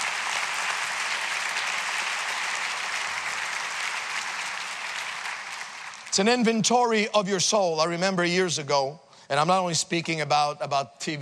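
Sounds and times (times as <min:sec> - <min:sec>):
crowd clapping: 0:00.0 - 0:06.5
speech: 0:06.2 - 0:11.2.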